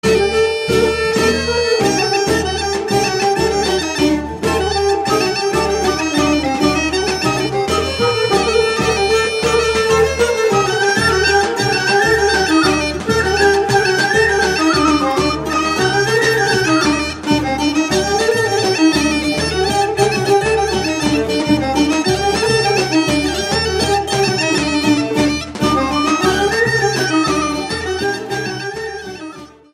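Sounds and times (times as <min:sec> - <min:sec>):
rachenitsa horo folk dance music: 0:00.0 - 0:29.7.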